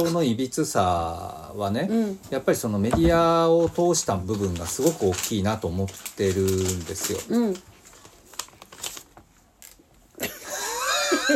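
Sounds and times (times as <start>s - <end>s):
speech: 0.0s - 7.7s
plastic potato chip bag being opened: 4.2s - 9.8s.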